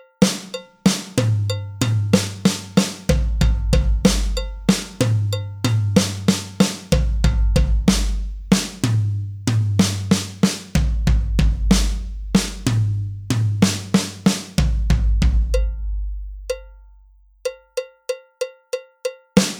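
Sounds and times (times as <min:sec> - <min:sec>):
tom drums at 63 bpm: 0:00.2 - 0:16.5.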